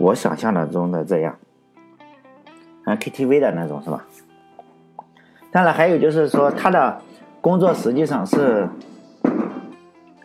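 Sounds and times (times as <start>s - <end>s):
speech: 0.0s - 1.4s, 2.9s - 4.2s, 5.5s - 9.4s
firecrackers going off outside: 7.8s - 9.8s.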